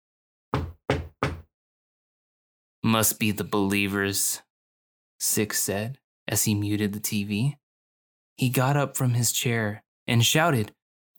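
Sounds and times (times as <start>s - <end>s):
firm knocks on a door: 0.6s - 1.5s
speech: 2.9s - 4.5s, 5.2s - 7.6s, 8.4s - 10.8s.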